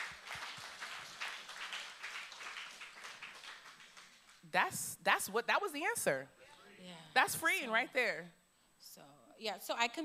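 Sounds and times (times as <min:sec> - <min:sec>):
audience clapping: 0:00.0 - 0:04.5
speech: 0:04.5 - 0:10.0.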